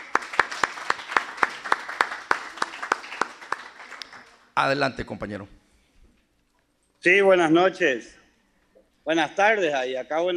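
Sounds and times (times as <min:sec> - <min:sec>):
applause: 0:00.0 - 0:04.8
speech: 0:04.6 - 0:05.6, 0:07.0 - 0:08.2, 0:09.0 - 0:10.3.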